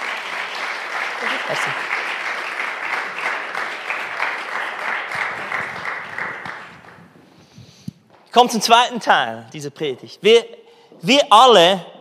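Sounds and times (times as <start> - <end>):
audience applause: 0.0 - 7.1
speech: 1.2 - 2.0, 8.4 - 11.9.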